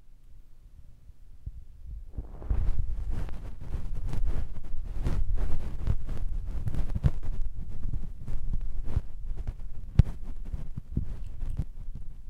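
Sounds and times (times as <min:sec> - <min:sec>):
low quiet hum: 0:00.0 - 0:12.2
in-ear massage rubbing and scratching on the left side: 0:02.2 - 0:12.2.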